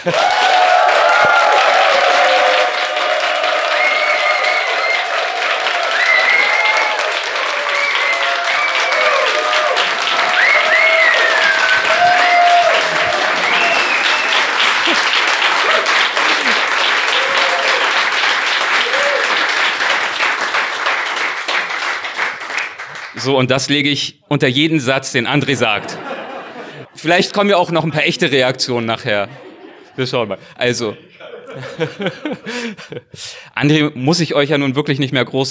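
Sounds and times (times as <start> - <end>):
speech: 0.0 - 0.5, 23.2 - 26.0, 27.0 - 35.5
audience whooping and raised voices: 0.0 - 19.6
live audience applause on cue: 0.0 - 23.2
laughter: 11.2 - 16.9, 25.4 - 27.0, 28.0 - 33.2.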